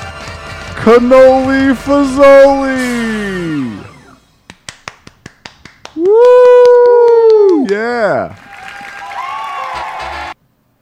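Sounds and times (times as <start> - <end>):
speech: 0.8 - 3.8, 7.7 - 8.4
audience applause: 4.9 - 10.4
audience cheering: 5.8 - 10.4.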